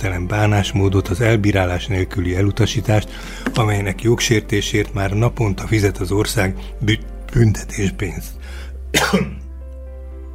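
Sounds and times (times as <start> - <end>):
speech: 0.0 - 9.4
person clearing throat: 9.0 - 9.4
person coughing: 9.0 - 9.4.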